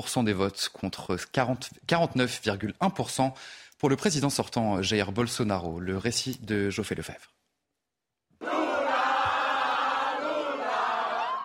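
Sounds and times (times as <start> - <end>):
speech: 0.0 - 7.4
crowd cheering at election victory celebration: 8.4 - 11.4.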